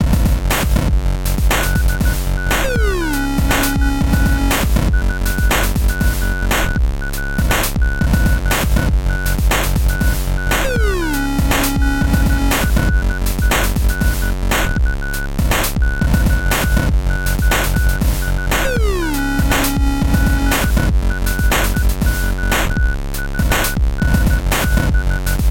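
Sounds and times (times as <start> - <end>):
beeps: 0.4 - 25.4.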